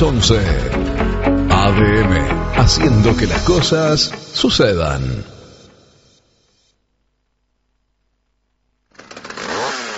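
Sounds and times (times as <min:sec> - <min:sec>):
speech: 0:00.0 - 0:00.7, 0:01.6 - 0:05.3
chainsaw cutting native forest: 0:08.9 - 0:09.9.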